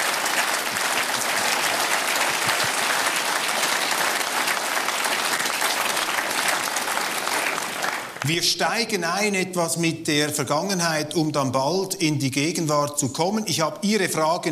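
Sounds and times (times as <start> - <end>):
roaring audience applause: 0.0 - 8.4
speech: 8.2 - 14.5.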